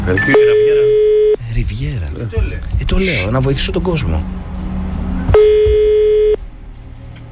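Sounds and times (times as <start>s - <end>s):
speech: 0.1s - 1.0s, 1.8s - 4.5s
phone call ringing tone: 0.2s - 1.4s, 5.4s - 6.4s.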